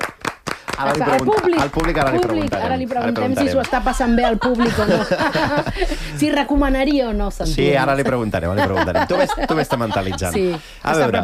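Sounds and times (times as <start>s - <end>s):
live show audience applauding the sound technician: 0.0s - 5.5s
speech: 0.8s - 11.2s
laughter: 3.7s - 6.4s, 8.4s - 11.2s.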